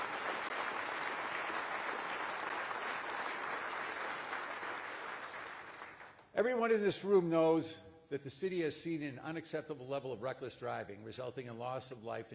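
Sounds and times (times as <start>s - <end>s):
audience applause: 0.0s - 6.2s
speech: 6.4s - 12.3s.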